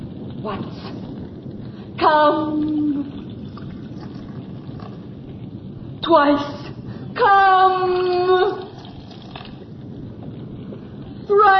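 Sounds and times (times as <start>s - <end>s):
speech: 0.4s - 1.1s, 2.0s - 3.0s, 6.0s - 6.6s, 7.2s - 8.6s, 11.3s - 11.5s
liquid pouring into a battle helmet: 3.4s - 5.0s, 8.6s - 9.6s.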